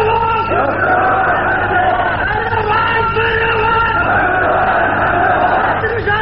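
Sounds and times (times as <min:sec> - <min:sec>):
crowd chanting slogans during a speech about an Islamic system of government: 0:00.2 - 0:06.1.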